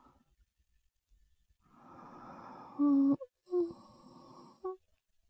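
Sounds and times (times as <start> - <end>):
person breathing in sleep: 1.8 - 4.8
person talking in sleep: 2.7 - 4.8.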